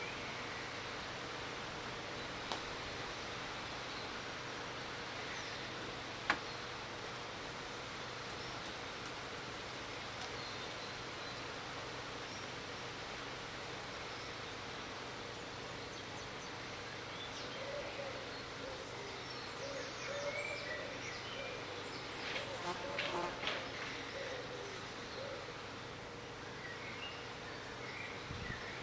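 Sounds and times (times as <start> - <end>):
birdsong: 0.0 - 28.8.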